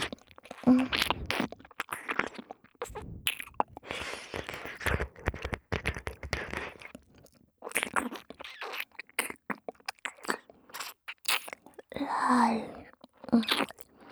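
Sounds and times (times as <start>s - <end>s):
ear licking ASMR loop: 0.0s - 12.0s, 12.8s - 14.1s.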